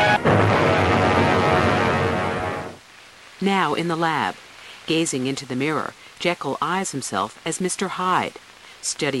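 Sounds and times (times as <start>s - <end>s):
fierce explosion: 0.1s - 2.8s
speech: 3.4s - 9.1s.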